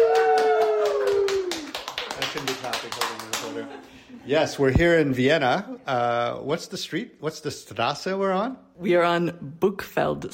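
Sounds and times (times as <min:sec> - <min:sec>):
person whooping: 0:00.0 - 0:01.8
small group clapping: 0:00.0 - 0:03.9
speech: 0:04.3 - 0:10.3.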